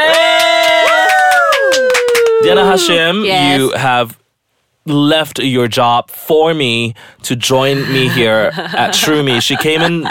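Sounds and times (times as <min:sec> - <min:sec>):
audience cheering and whooping: 0:00.0 - 0:03.2
speech: 0:02.5 - 0:04.2, 0:04.8 - 0:10.0
laughter: 0:07.8 - 0:10.0.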